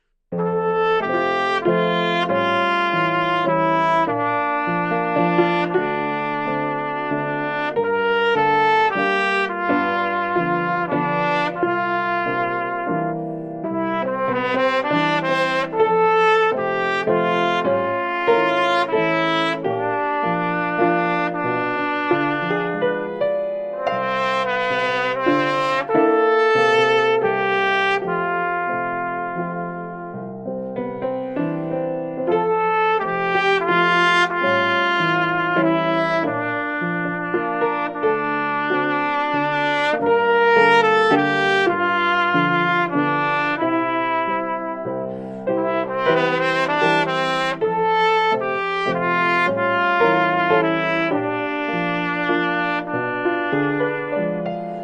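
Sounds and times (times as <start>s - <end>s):
trumpet: 0.0s - 54.8s.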